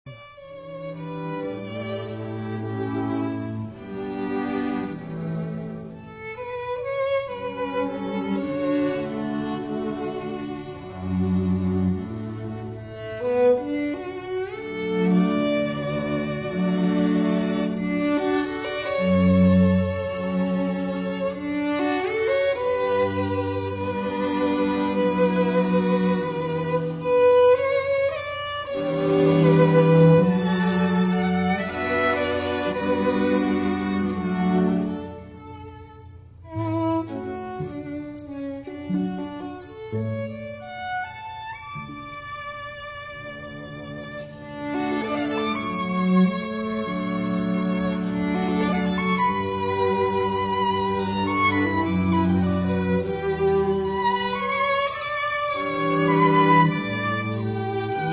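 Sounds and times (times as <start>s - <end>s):
quartet playing a waltz: 0.1s - 58.1s.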